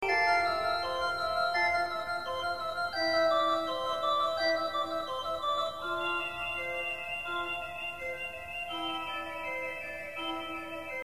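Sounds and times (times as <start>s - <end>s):
organ: 0.0s - 11.0s.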